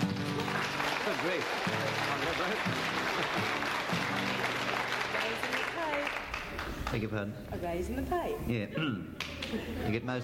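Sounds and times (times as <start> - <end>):
audience applause: 0.0 - 7.1
speech: 1.2 - 3.7, 6.9 - 10.2.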